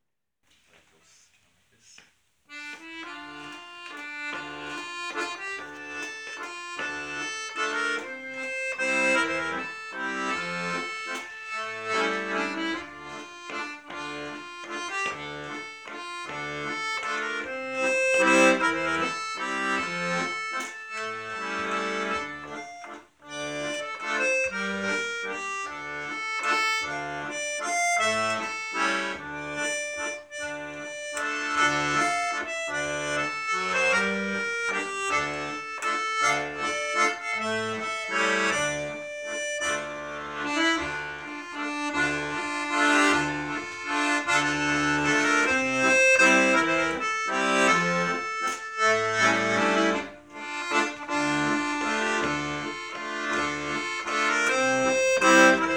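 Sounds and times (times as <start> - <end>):
waltz tune: 2.5 - 55.7.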